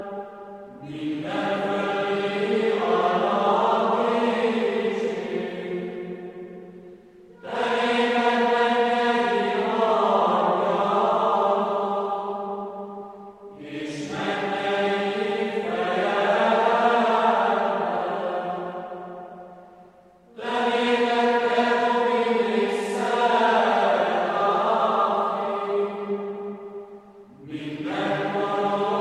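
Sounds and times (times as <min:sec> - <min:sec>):
chanting: 0:00.0 - 0:29.0.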